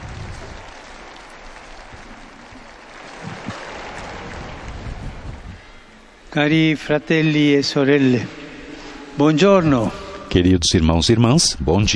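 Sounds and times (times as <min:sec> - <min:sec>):
large outdoor crowd applauding and cheering: 0:00.0 - 0:05.4
wind buffeting the microphone: 0:00.0 - 0:06.3
speech: 0:06.3 - 0:08.4, 0:09.2 - 0:11.9.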